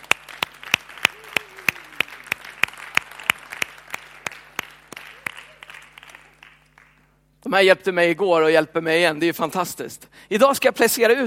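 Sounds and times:
audience applause: 0.0 - 7.1
speech: 7.5 - 11.2.

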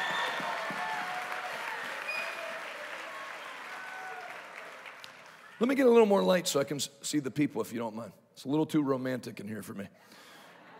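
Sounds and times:
audience hand clapping: 0.0 - 5.5
speech: 5.6 - 10.2.

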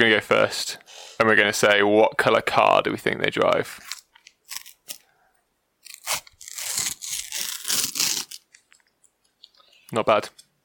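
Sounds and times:
speech: 0.0 - 3.9, 9.9 - 10.4
tearing open sticker packets: 3.8 - 5.0, 5.8 - 8.7.

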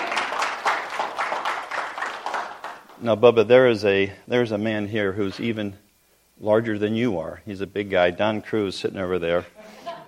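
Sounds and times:
church congregation applauding to welcome a family: 0.0 - 3.0
speech: 3.0 - 5.8, 6.4 - 9.7.

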